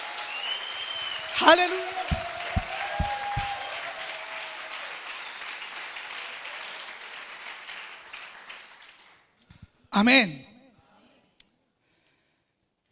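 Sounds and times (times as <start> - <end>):
audience applauding loudly: 0.0 - 9.2
speech: 1.4 - 2.2, 10.0 - 10.5
low thumps: 2.0 - 3.6.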